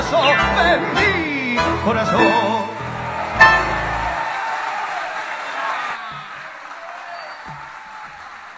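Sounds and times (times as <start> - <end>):
speech: 0.1 - 2.7
audience applause after tango song: 2.7 - 8.5.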